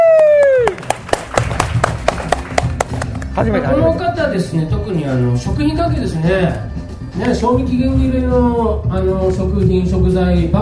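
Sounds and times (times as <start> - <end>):
scattered handclaps: 0.0 - 3.4
speech: 3.4 - 10.5.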